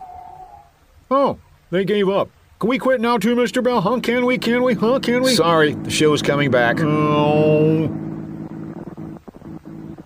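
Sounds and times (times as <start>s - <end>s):
speech: 1.1s - 8.1s
car motor sputtering: 4.8s - 10.0s.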